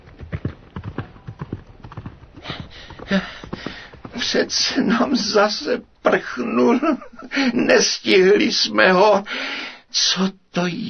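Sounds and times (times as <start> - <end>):
horse hooves galloping away: 0.0 - 5.4
speech: 3.1 - 3.4, 4.2 - 10.8.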